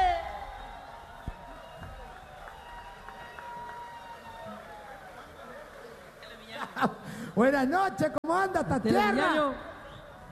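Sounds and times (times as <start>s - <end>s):
audience applause: 0.0s - 6.6s
speech: 6.8s - 9.7s.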